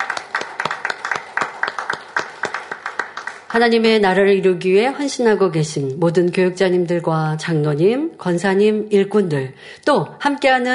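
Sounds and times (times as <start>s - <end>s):
audience applause: 0.0s - 3.6s
speech: 3.5s - 10.7s.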